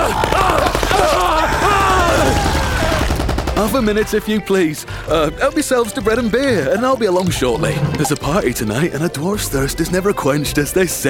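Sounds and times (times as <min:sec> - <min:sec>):
voices shouting: 0:00.0 - 0:03.3
video game gunfire: 0:00.0 - 0:03.8
speech: 0:03.7 - 0:11.0.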